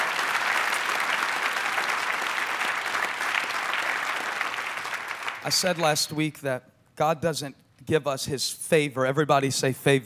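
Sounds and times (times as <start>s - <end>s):
church audience clapping hands: 0.0s - 6.1s
speech: 5.4s - 10.0s.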